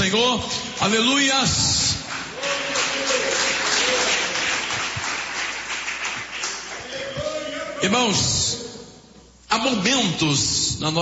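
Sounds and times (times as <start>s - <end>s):
speech: 0.1s - 2.0s, 7.8s - 8.5s, 9.5s - 11.0s
audience applause: 2.0s - 7.6s.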